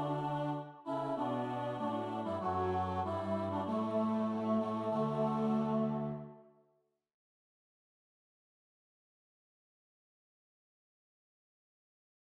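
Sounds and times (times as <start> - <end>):
tenor singing: 0.0 - 6.4.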